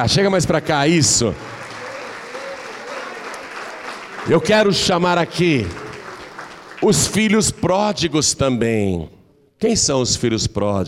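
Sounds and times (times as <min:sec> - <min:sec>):
speech: 0:00.0 - 0:01.6, 0:04.2 - 0:05.8, 0:06.8 - 0:10.8
audience applauding: 0:01.3 - 0:07.5.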